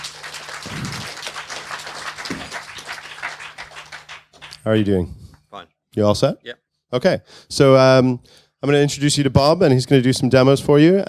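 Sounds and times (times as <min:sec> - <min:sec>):
audience applause in a tent: 0:00.0 - 0:04.6
speech: 0:04.6 - 0:11.0.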